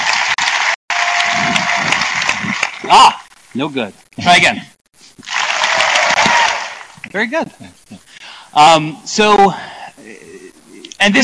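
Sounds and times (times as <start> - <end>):
audience applauding at a technical talk: 0.0 - 3.3, 5.2 - 7.2
speech: 2.9 - 5.3, 7.1 - 10.4, 11.0 - 11.2.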